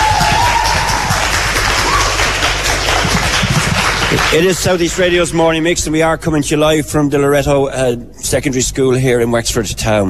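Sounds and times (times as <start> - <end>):
audience applause: 0.0 - 5.1
speech: 4.1 - 10.0.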